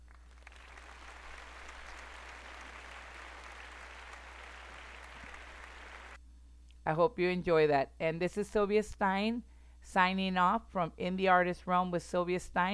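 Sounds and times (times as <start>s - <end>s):
recital audience applauding: 0.0s - 6.2s
speech: 6.9s - 12.7s.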